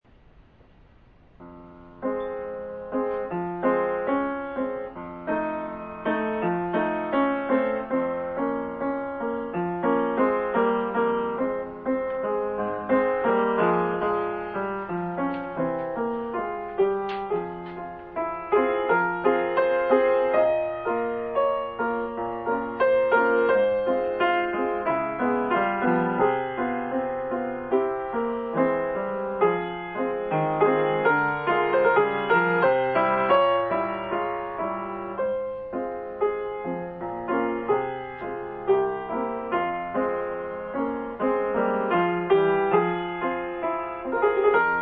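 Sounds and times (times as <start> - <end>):
recital performance: 0.6 - 44.8.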